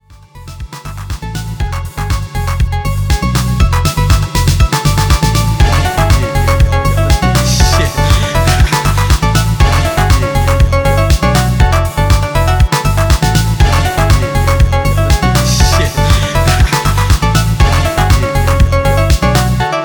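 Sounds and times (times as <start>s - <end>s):
salsa music: 0.6s - 19.8s.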